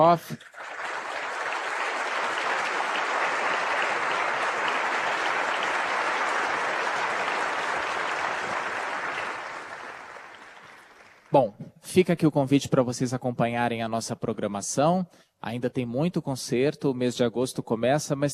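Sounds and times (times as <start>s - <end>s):
speech: 0.0s - 0.5s, 11.3s - 18.3s
audience applause: 0.4s - 11.4s.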